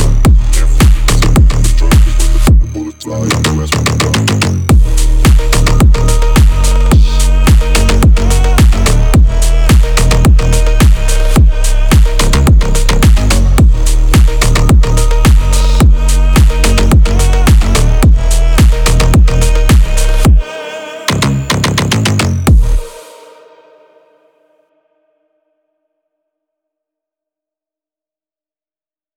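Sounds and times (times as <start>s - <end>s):
powerful bass: 0.0s - 20.5s, 21.1s - 23.0s
phonk music: 0.0s - 24.2s.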